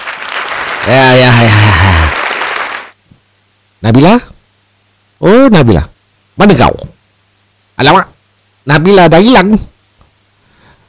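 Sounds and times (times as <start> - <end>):
applause for a podcast sponsor: 0.0 - 3.0
speech: 0.8 - 2.1, 3.8 - 4.4, 5.2 - 6.9, 7.8 - 9.7.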